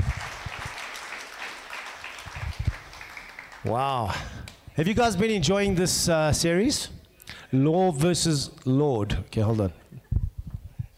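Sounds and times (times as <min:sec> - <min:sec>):
crowd clapping: 0:00.0 - 0:04.6
speech: 0:03.6 - 0:09.8.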